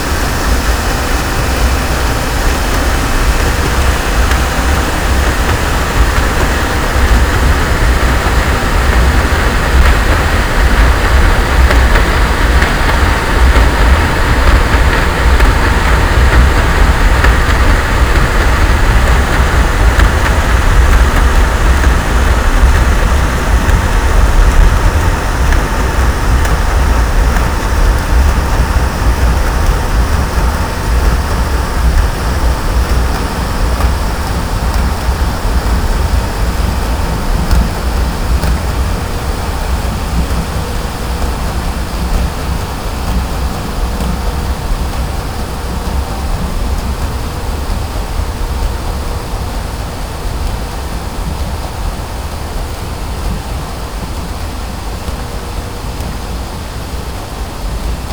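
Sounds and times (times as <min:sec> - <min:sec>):
noise: 0:00.0 - 0:58.1.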